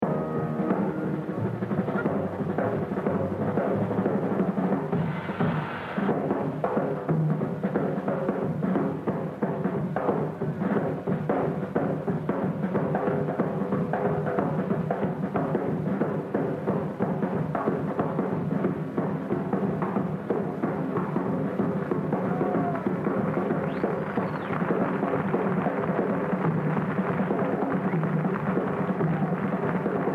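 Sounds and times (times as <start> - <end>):
jazz drumming: 0.0 - 30.1.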